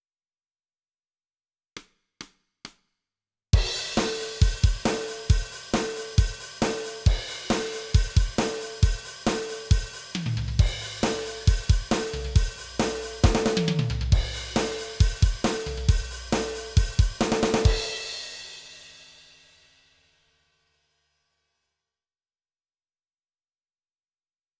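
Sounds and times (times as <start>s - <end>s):
drums: 3.6s - 20.0s.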